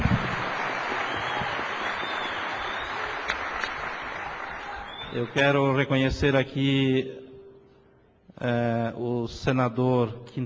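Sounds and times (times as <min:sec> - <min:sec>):
audience applause: 0:00.0 - 0:05.4
speech: 0:05.2 - 0:07.2, 0:08.4 - 0:10.4.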